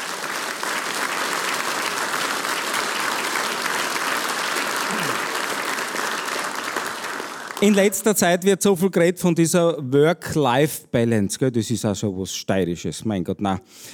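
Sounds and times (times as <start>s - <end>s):
audience applause: 0.0s - 8.1s
speech: 7.6s - 13.9s.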